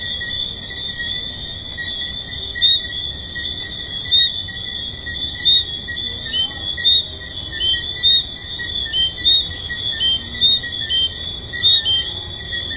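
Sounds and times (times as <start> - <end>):
tree frogs calling: 0.0 - 12.7.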